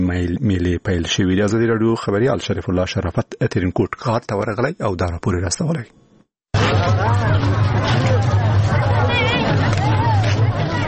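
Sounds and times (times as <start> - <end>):
speech: 0.1 - 6.0, 6.7 - 8.2
dense crowd babble of Eid festival-goers at a traditional fair in Tarinkot city: 6.5 - 10.8.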